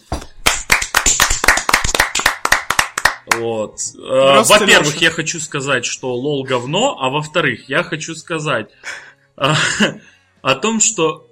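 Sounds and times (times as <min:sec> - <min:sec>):
hands clapping: 0:00.0 - 0:03.5
speech: 0:03.4 - 0:11.3
laughter: 0:09.4 - 0:10.0.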